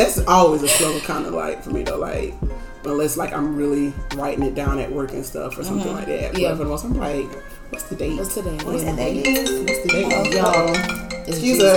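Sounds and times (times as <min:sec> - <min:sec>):
speech: 0:00.0 - 0:11.7
phones ringing through a computer: 0:09.2 - 0:11.7.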